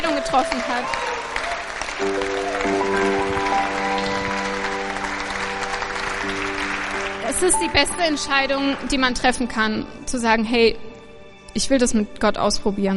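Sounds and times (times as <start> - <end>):
audience applause: 0.0 - 9.4
speech: 0.3 - 1.2, 2.0 - 3.2, 7.3 - 10.9, 11.6 - 12.9.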